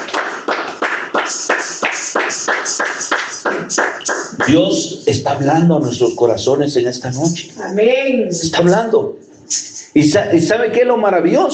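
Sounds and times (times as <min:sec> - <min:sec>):
loud audience applause: 0:00.0 - 0:04.7
speech: 0:01.2 - 0:03.9, 0:04.5 - 0:11.5.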